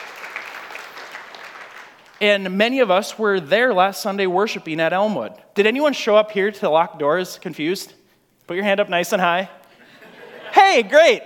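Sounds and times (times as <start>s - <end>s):
audience applause: 0.0s - 2.2s
speech: 2.2s - 9.6s, 10.7s - 11.2s
laughter: 9.7s - 11.0s.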